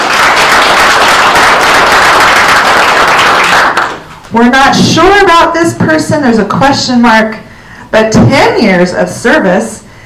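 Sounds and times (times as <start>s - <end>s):
crowd clapping: 0.0s - 4.3s
speech: 4.3s - 9.8s.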